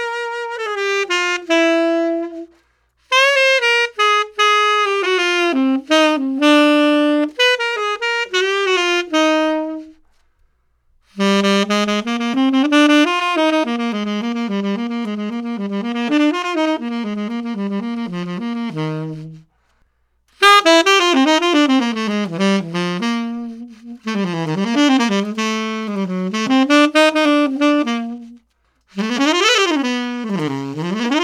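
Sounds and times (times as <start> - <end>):
wooden tenor instrument: 0.0 - 10.2, 11.1 - 19.5, 20.4 - 31.2.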